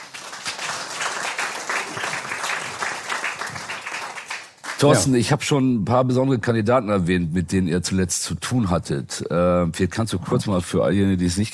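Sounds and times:
audience applause: 0:00.0 - 0:05.1
speech: 0:04.8 - 0:11.5.

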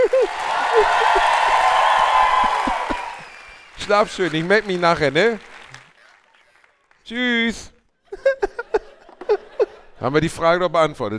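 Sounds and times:
laughter: 0:00.0 - 0:03.4, 0:08.0 - 0:10.2
clapping applause: 0:00.0 - 0:08.0
speech: 0:03.9 - 0:05.5, 0:07.1 - 0:08.5, 0:10.0 - 0:11.1.

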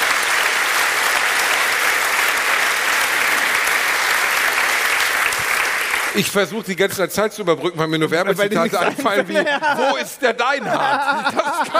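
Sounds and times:
audience applause: 0:00.0 - 0:06.4
speech: 0:06.2 - 0:11.7
laughter: 0:08.4 - 0:11.7.

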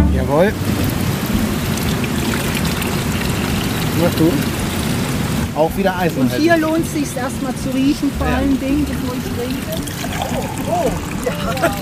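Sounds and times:
Klotzer spring mineral water flowing out of the Eichhörnchenbrunnen fountain: 0:00.1 - 0:11.8
speech: 0:00.2 - 0:00.9, 0:04.0 - 0:04.6, 0:05.6 - 0:11.8
laughter: 0:10.2 - 0:11.8.

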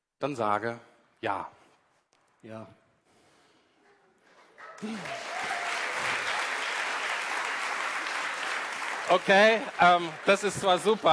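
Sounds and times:
speech: 0:00.2 - 0:01.6, 0:02.4 - 0:02.8, 0:04.8 - 0:05.3, 0:09.1 - 0:11.1
audience applause: 0:04.7 - 0:11.1.

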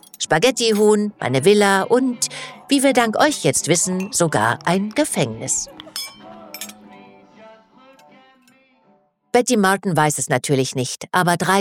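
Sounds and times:
speech: 0:00.3 - 0:06.1, 0:09.3 - 0:11.5
glasses clinking in a toast: 0:05.7 - 0:07.0.

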